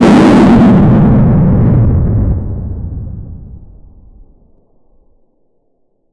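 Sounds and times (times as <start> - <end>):
two nuclear missiles launching: 0.0 - 4.3.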